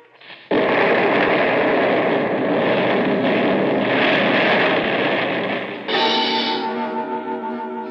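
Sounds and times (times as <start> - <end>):
explosion: 0.0 - 7.0
heavy roaring rumble: 0.5 - 6.6.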